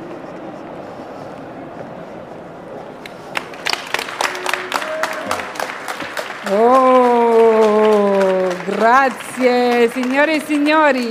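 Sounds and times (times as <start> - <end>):
audience applause: 3.3 - 11.0
speech: 6.5 - 7.0, 8.7 - 11.0.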